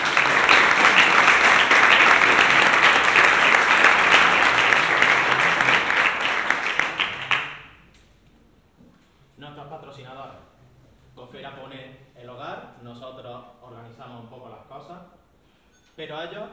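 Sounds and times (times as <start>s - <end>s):
audience applause: 0.0s - 7.7s.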